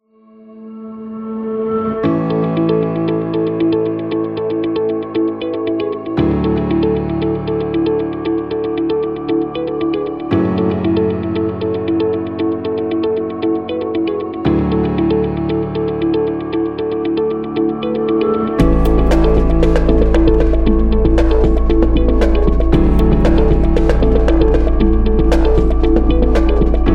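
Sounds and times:
corporate music: 1.6s - 26.9s.

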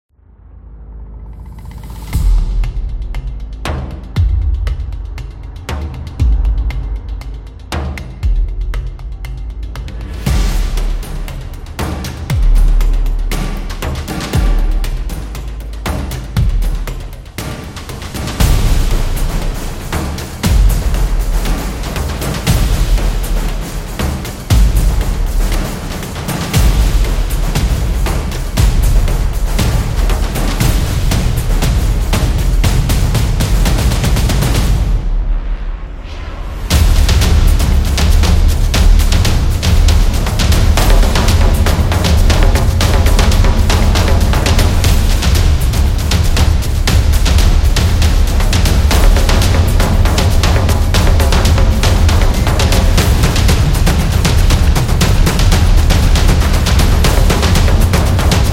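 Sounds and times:
epic action drums: 1.2s - 58.5s.

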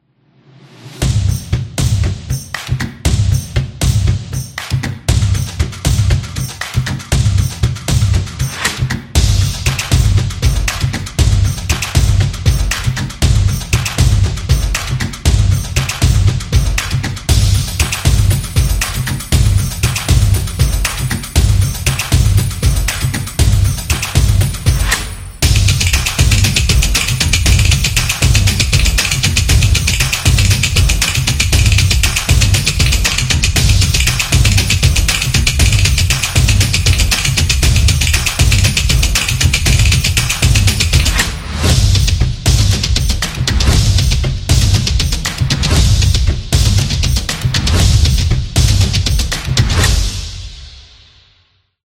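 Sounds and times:
percussion: 0.4s - 51.4s.

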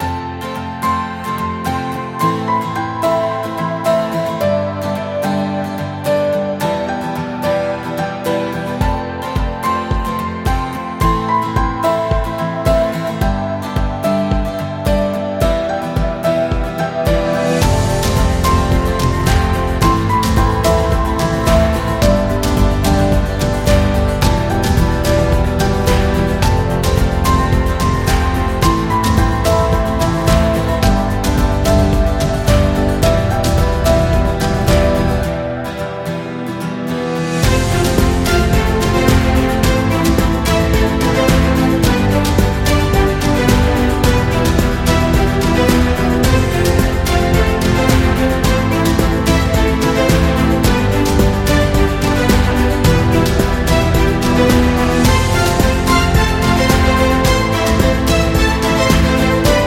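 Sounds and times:
upbeat acoustic pop: 0.0s - 59.6s.

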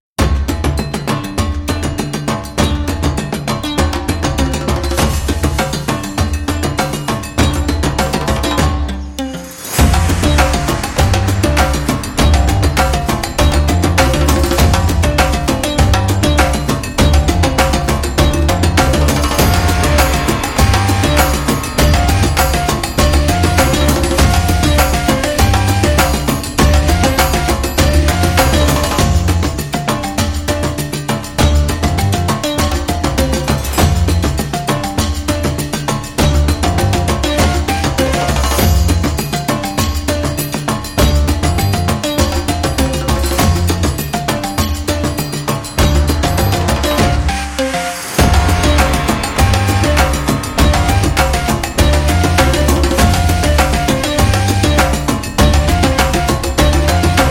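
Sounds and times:
African tribal music: 0.2s - 57.3s.

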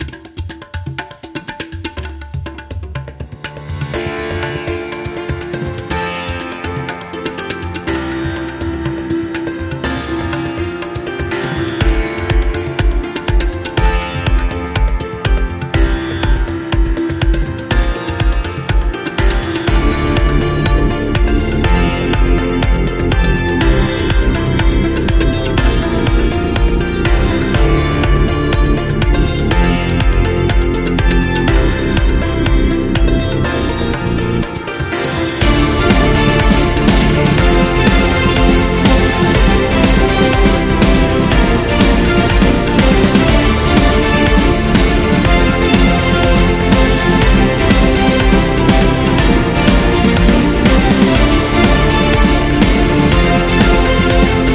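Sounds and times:
India music: 0.0s - 54.5s.

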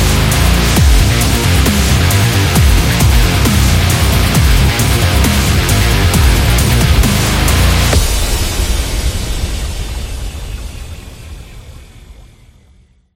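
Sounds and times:
sport dubstep rock music: 0.0s - 10.2s.

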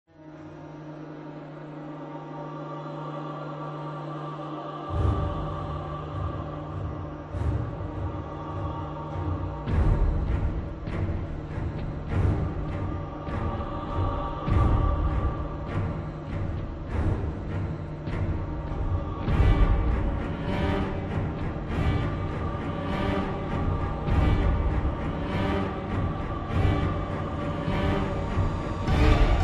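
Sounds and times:
dark horror background music: 0.1s - 29.4s.

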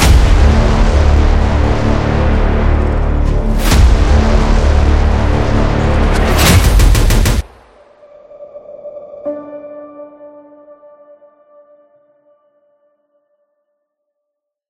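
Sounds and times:
creepy sound: 0.0s - 10.6s.

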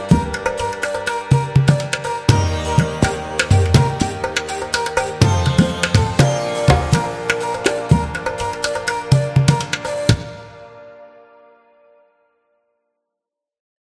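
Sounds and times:
Indian festival music: 0.0s - 10.6s.

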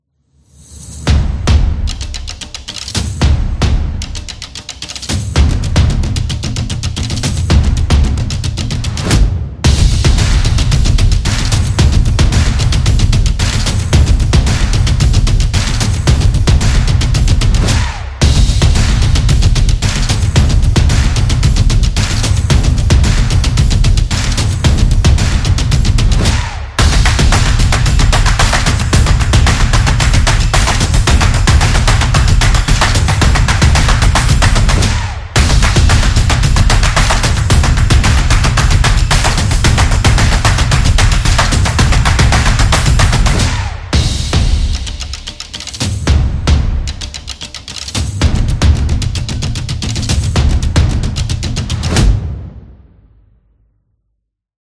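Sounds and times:
drums intro: 0.7s - 52.9s.

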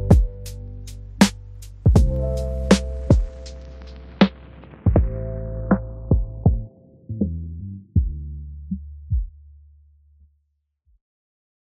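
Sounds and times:
travel lo-fi music: 0.0s - 8.4s.

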